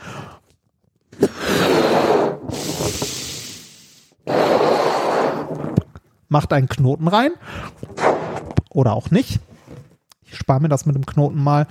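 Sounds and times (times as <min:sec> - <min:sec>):
balloon being blown up: 0:01.1 - 0:05.9
speech: 0:06.3 - 0:07.8, 0:08.8 - 0:09.5, 0:10.5 - 0:11.6.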